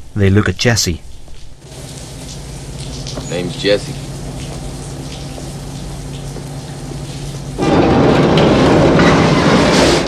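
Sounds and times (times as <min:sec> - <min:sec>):
speech: 0:00.2 - 0:01.1, 0:03.3 - 0:04.0
train running on rails: 0:07.5 - 0:10.0.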